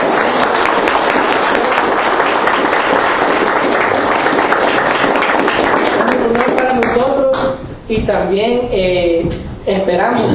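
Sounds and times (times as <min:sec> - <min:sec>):
audience applause: 0:00.0 - 0:07.2
speech: 0:07.9 - 0:10.3.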